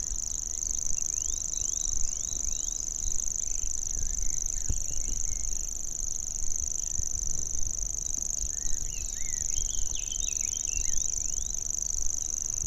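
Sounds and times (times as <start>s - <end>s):
grasshopper warbler singing: 0.0s - 12.6s.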